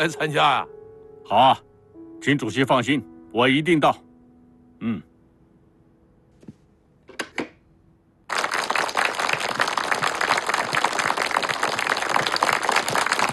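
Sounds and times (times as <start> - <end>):
speech: 0.0 - 4.1, 4.8 - 5.1
applause: 8.3 - 13.3.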